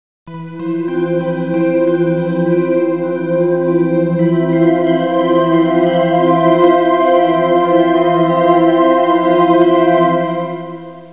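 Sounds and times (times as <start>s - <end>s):
mystical music ringtone: 0.3s - 11.1s.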